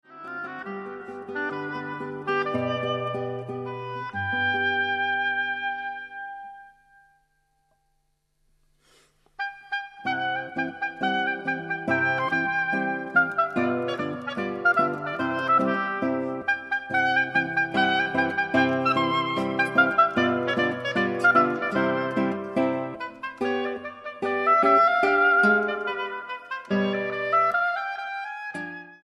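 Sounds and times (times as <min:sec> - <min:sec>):
classical music: 0:00.0 - 0:06.4, 0:09.4 - 0:29.0.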